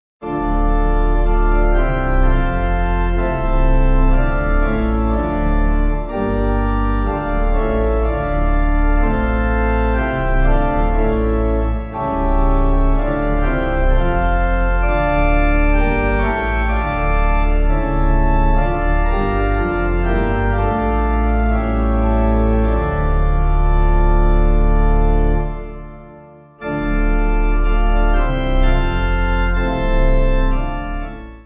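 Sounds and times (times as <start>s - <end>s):
pipe organ playing a hymn: 0.2s - 31.4s.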